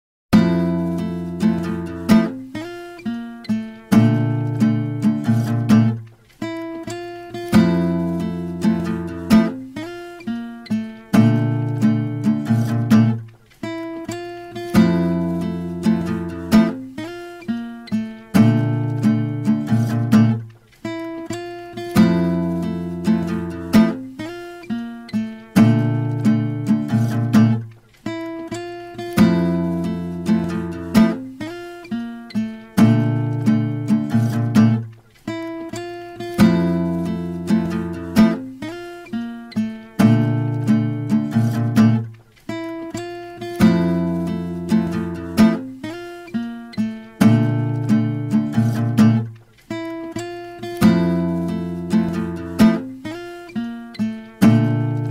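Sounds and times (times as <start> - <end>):
instrumental music: 0.3 - 55.0.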